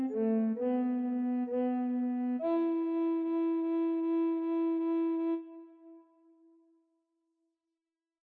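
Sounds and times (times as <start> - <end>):
recorder quartet with bass recorder playing a sarabande: 0.0 - 5.4.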